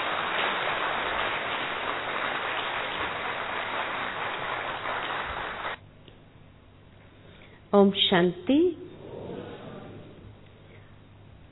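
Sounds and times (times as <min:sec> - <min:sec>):
crowd applause welcoming a speaker: 0:00.0 - 0:05.8
speech: 0:07.7 - 0:08.8.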